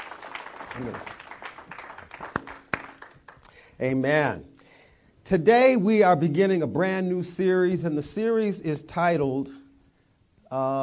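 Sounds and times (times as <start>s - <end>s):
audience applause: 0.0s - 3.5s
speech: 0.8s - 1.2s, 3.8s - 4.5s, 5.3s - 9.6s, 10.5s - 10.8s.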